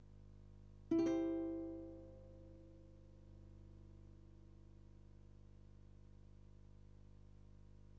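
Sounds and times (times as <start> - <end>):
guitar: 0.9 - 3.3.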